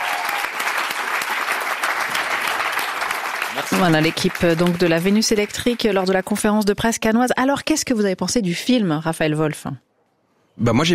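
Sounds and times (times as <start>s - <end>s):
audience applause: 0.0s - 6.3s
speech: 3.6s - 9.9s, 10.6s - 10.9s.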